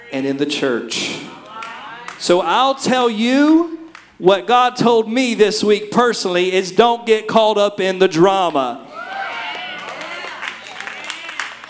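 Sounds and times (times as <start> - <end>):
speech: 0.1 - 1.3, 2.2 - 8.8
hand claps from audience: 1.4 - 2.2, 3.5 - 4.2, 9.8 - 11.6.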